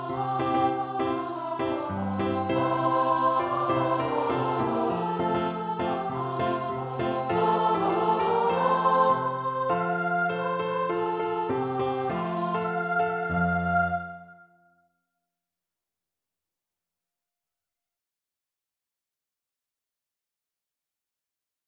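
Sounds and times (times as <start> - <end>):
choir singing: 0.0 - 14.5.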